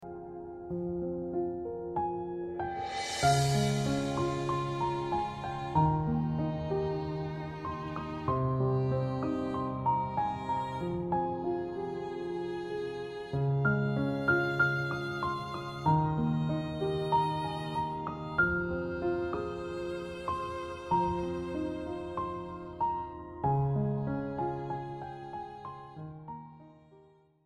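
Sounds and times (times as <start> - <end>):
lively beautiful night piano music for radio: 0.0 - 27.0.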